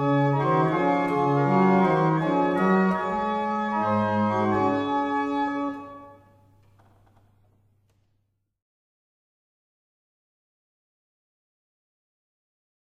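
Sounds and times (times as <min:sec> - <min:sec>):
barrel organs: 0:00.0 - 0:07.6.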